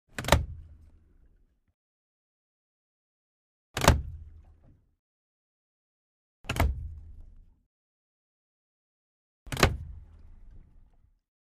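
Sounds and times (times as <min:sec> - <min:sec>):
boat control lever: 0:00.1 - 0:00.6, 0:03.8 - 0:04.2, 0:09.5 - 0:09.9.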